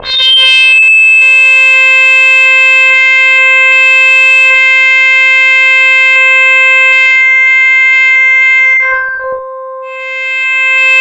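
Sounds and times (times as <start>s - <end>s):
synth line in C5: 0.0s - 10.9s.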